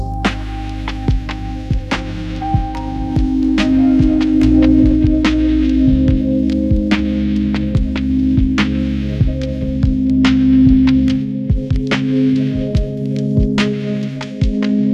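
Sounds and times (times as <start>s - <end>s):
soft focus lo-fi piano ringtone: 0.0s - 14.9s.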